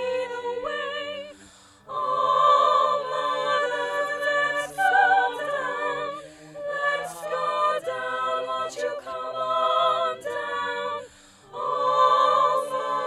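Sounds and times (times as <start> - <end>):
soprano singing: 0.0 - 13.0.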